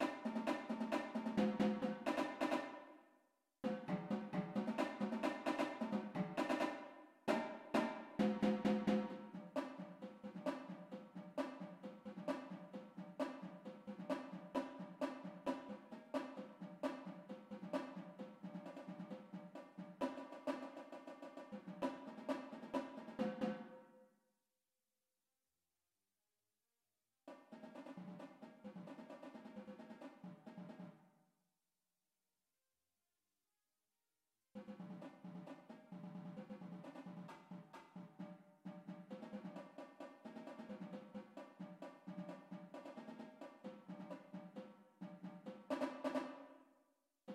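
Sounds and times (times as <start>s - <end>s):
drumline: 0.0s - 2.8s, 3.6s - 23.7s, 34.6s - 46.5s
tenor drums: 0.0s - 2.9s, 3.6s - 23.8s, 27.3s - 31.0s, 34.6s - 46.6s.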